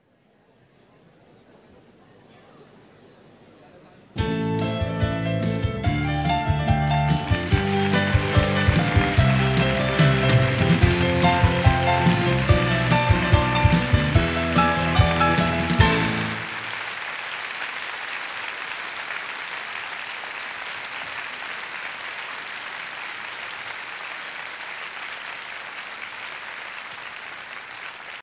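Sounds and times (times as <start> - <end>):
musical introduction: 4.2 - 16.9.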